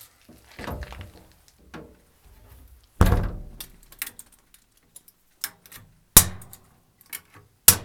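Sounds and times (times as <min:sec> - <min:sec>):
coal stove metal door clanking shut: 0:00.6 - 0:04.1.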